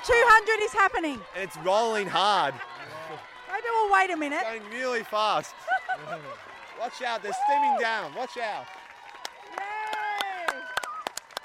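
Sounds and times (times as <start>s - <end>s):
speech: 0.0s - 8.8s
spectators cheering at race finish line: 0.0s - 11.4s
laughter: 1.9s - 3.4s, 5.3s - 6.6s.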